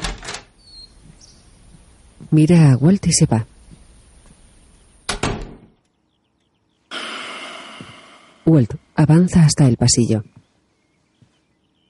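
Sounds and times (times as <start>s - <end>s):
door handle and latch rattling clunks: 0.0s - 0.5s
speech: 2.3s - 3.5s, 8.5s - 10.4s.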